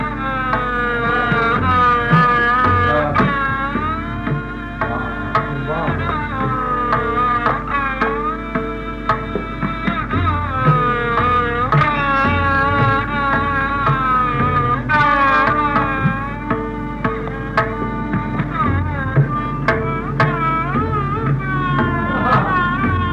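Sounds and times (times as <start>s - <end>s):
sarangi playing a raga: 0.0s - 23.1s.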